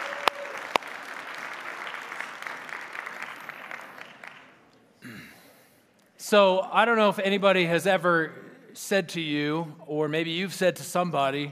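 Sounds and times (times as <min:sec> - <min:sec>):
audience applause: 0:00.0 - 0:04.6
speech: 0:06.3 - 0:11.5.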